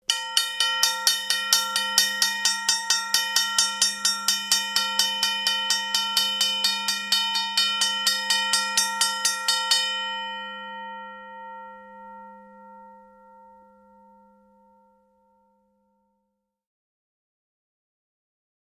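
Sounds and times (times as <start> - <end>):
small high-pitched railroad crossing bell ringing: 0.1 - 13.6.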